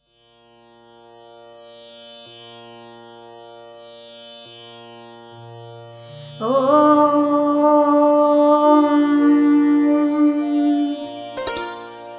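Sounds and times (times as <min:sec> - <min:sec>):
meditation mantra chanting: 0:06.4 - 0:11.2.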